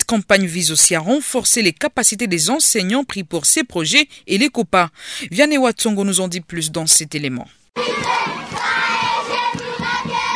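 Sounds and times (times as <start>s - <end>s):
speech: 0.1s - 8.2s
schoolchildren shouting and cheering: 7.8s - 10.3s.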